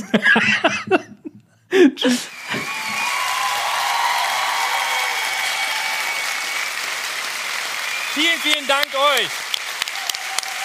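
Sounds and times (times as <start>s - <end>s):
laughter: 0.0s - 3.0s
recorded applause played from tape: 2.2s - 10.6s
faint cheers: 2.3s - 10.6s.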